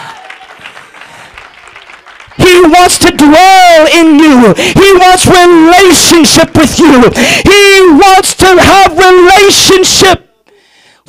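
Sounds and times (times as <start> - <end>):
audience clapping: 0.0 - 3.1
speech: 2.6 - 10.2.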